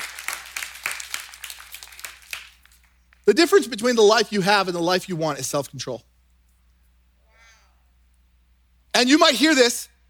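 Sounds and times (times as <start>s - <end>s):
audience clapping: 0.0s - 3.3s
speech: 3.3s - 6.1s, 9.0s - 9.9s.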